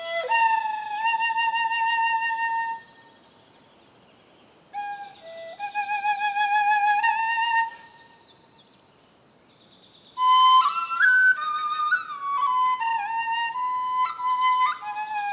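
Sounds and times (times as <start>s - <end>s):
relaxing Eastern music: 0.0s - 3.1s, 4.8s - 8.1s, 10.2s - 15.3s.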